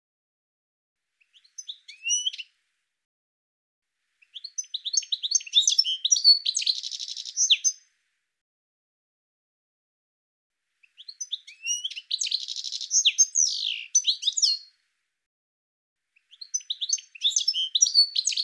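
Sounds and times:
bird twittering chirps: 1.2s - 2.5s, 4.2s - 7.8s, 10.8s - 14.7s, 16.2s - 18.4s.

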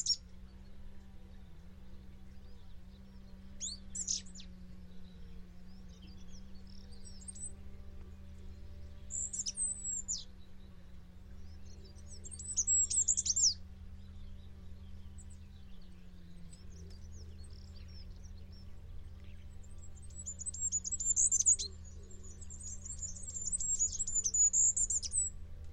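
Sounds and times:
bird twittering song: 0.0s - 25.7s
low hum: 0.0s - 25.7s.

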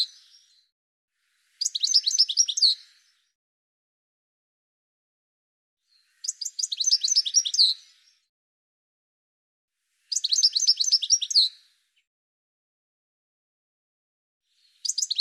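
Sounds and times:
birds chirping and twittering: 0.0s - 0.7s, 1.5s - 3.4s, 5.9s - 8.3s, 10.1s - 11.8s, 14.5s - 15.2s.

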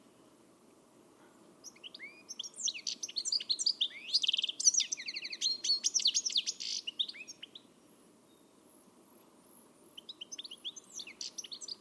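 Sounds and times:
bird twittering chirps and trills: 1.6s - 8.6s, 10.0s - 11.7s.

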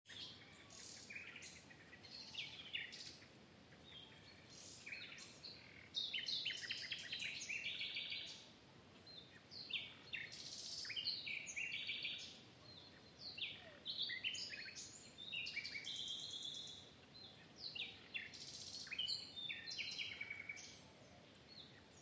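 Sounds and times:
bird chirping: 0.1s - 22.0s.

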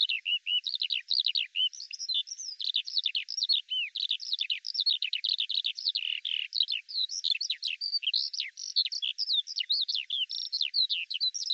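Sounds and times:
Eurasian skylark singing: 0.0s - 11.5s.

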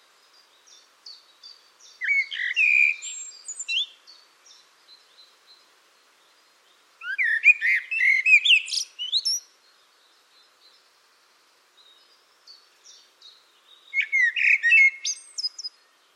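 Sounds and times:
bird calling: 2.0s - 4.0s, 7.0s - 9.4s, 13.9s - 15.8s.

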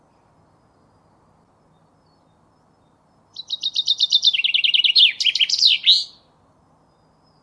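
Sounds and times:
common chaffinch singing: 1.7s - 7.4s.

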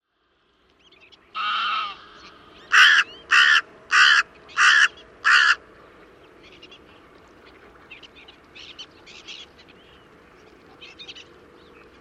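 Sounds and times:
bird cawing: 1.4s - 5.6s.

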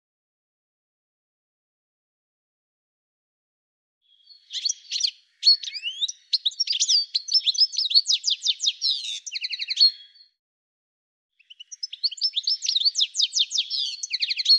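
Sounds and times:
bird chirping and trilling: 4.1s - 10.4s, 11.4s - 14.5s.

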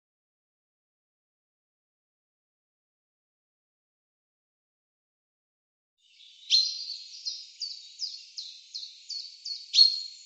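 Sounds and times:
bird chirping in rapid high sharp trilling runs: 6.0s - 10.2s.

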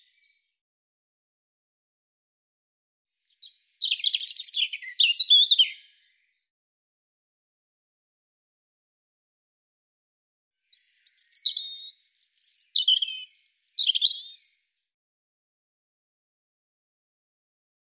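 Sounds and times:
European robin song of high thin warbles and trills: 3.4s - 6.0s, 10.6s - 14.4s.

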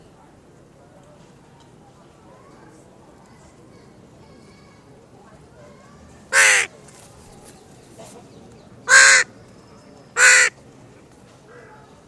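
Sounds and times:
bird cawing: 6.3s - 6.7s, 8.9s - 9.3s, 10.2s - 10.6s.

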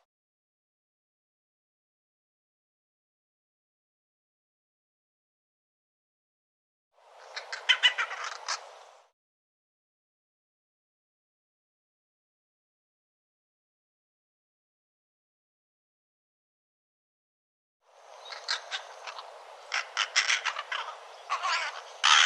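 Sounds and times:
bird giving harsh hoarse rasping caws: 7.2s - 8.9s, 18.2s - 22.2s.

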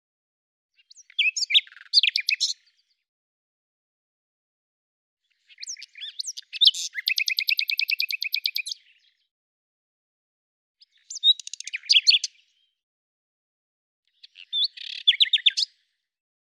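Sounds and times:
bird singing: 0.8s - 3.0s, 5.3s - 9.3s, 10.8s - 12.8s, 14.1s - 15.8s.

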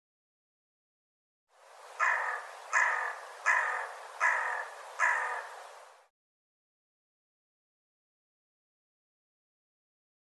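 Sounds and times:
bird giving harsh rough buzzy cawing calls: 1.9s - 5.8s.

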